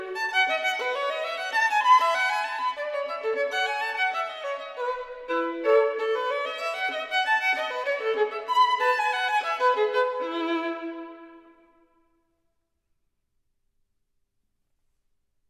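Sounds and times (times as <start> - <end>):
solo violin piece: 0.0 - 11.9.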